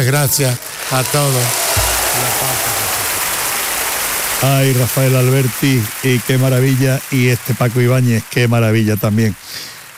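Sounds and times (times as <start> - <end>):
speech: 0.0 - 2.7, 4.4 - 9.7
audience applause: 0.4 - 8.0.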